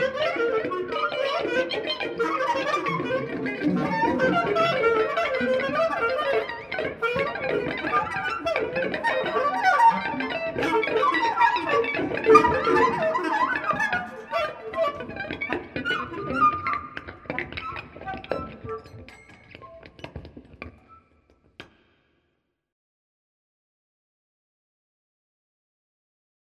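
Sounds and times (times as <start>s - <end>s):
clarinet: 0.0s - 20.2s
guitar: 0.0s - 21.8s.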